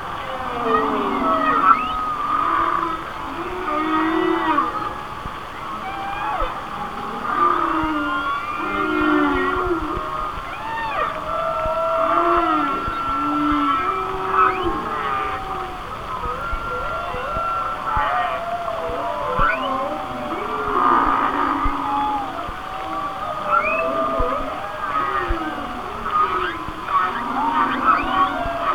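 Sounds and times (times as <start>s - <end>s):
constant hiss: 0.0s - 28.7s
whale song: 0.0s - 28.7s.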